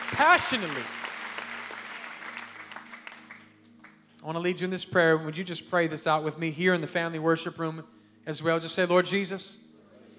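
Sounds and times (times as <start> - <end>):
audience clapping hands: 0.0 - 4.0
speech: 0.2 - 1.0, 4.2 - 9.6.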